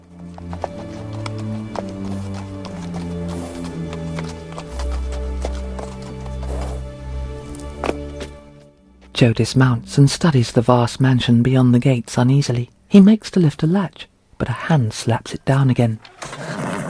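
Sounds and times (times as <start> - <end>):
horse hooves clip-clopping as ridden along a path past manicured lawns: 0.0 - 9.2
speech: 9.2 - 16.5.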